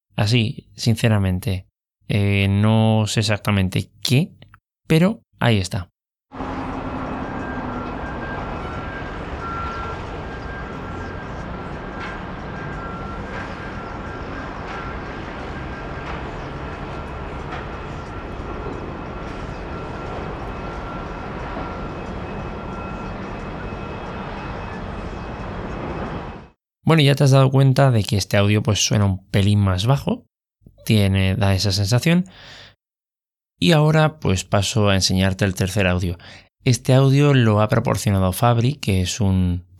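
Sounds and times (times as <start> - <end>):
speech: 0.2 - 6.4, 26.9 - 32.7, 33.6 - 39.7
dense steady roar of street traffic or engine noise: 6.3 - 26.5
faint sustained whine: 6.4 - 26.4.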